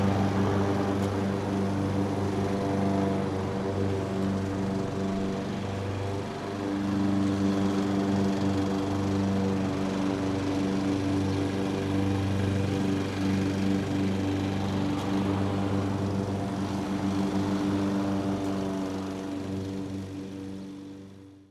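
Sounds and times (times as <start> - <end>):
distant landscaping lawn mowers on a golf course in a city subdivision: 0.0 - 21.4.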